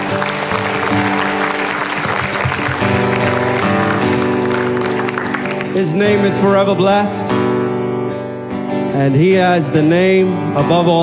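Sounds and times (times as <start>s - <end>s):
crowd applauding: 0.0s - 6.5s
speech: 5.8s - 7.6s, 9.0s - 11.0s.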